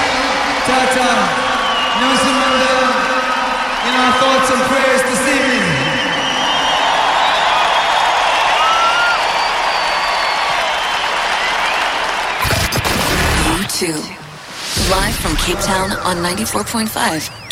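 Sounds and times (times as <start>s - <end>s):
crowd clapping and cheering: 0.0s - 13.8s
speech: 3.9s - 5.7s, 13.8s - 14.2s, 14.8s - 17.4s.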